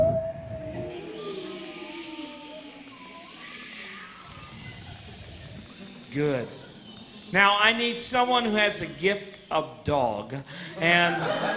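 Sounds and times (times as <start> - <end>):
audience imitating wind and rain: 0.0 - 7.9
laughter: 4.3 - 7.3, 10.8 - 11.5
speech: 6.2 - 6.6, 7.3 - 11.5.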